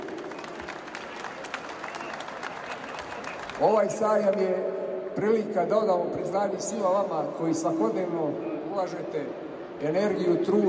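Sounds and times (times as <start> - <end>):
audience applause at an agricultural fair: 0.0 - 4.0
speech: 3.6 - 10.6.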